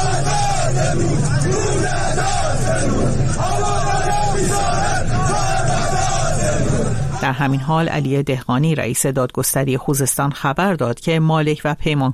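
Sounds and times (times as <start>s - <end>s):
crowd of protesters shouting outside building: 0.0s - 8.2s
speech: 7.3s - 12.1s.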